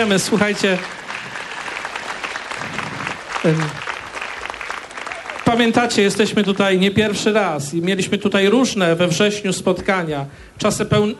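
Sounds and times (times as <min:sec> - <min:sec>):
speech: 0:00.0 - 0:01.0, 0:03.4 - 0:03.9, 0:05.5 - 0:11.1
audience applause: 0:00.0 - 0:07.1.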